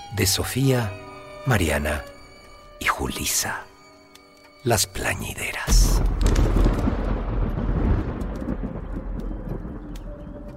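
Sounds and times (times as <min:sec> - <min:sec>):
speech: 0:00.1 - 0:02.1, 0:02.8 - 0:03.7, 0:04.6 - 0:06.5
faint rain: 0:05.1 - 0:10.5
crackles: 0:05.4 - 0:10.5
thunder rumbling from a looming storm: 0:05.7 - 0:10.5.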